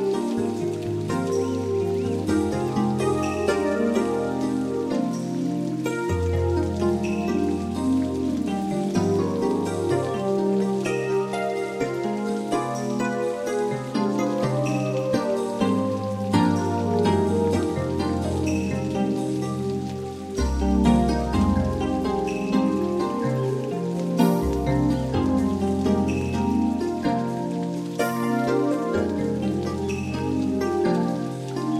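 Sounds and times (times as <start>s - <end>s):
rain forest nature ambience: 0.0s - 31.7s.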